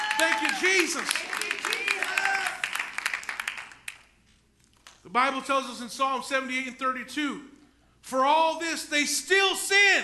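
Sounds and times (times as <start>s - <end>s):
audience clapping: 0.0s - 4.2s
speech: 0.2s - 2.2s, 5.1s - 10.0s.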